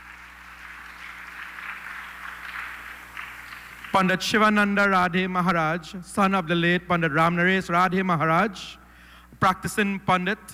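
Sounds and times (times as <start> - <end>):
audience applause: 0.0 - 4.3
speech: 3.9 - 8.8, 9.4 - 10.5.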